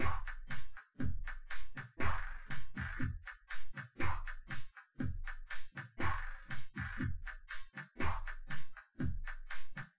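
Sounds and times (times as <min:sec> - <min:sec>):
drums with synth convolution: 0:00.0 - 0:09.9.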